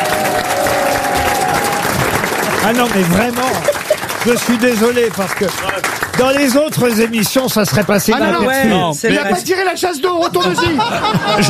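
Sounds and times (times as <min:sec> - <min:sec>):
audience clapping to greet a man returning from the toilets: 0:00.0 - 0:08.6
laughter: 0:01.2 - 0:05.0, 0:10.1 - 0:11.4
speech: 0:02.6 - 0:11.4.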